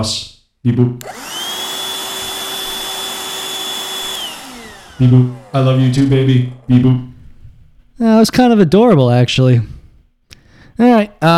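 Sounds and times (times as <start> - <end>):
speech: 0.0 - 1.2, 5.0 - 7.2, 8.0 - 9.8, 10.8 - 11.3
robot vacuum cleaner running: 1.0 - 8.0.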